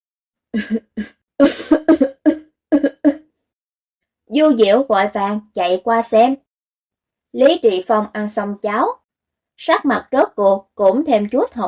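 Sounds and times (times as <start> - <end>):
speech: 0.5 - 2.0, 4.4 - 6.4, 7.3 - 9.0, 9.6 - 11.6
person coughing: 0.6 - 3.1.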